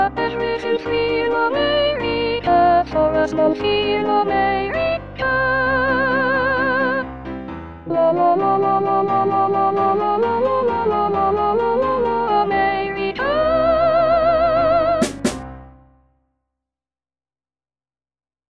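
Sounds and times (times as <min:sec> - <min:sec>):
soprano singing: 0:00.0 - 0:07.2, 0:07.9 - 0:15.2.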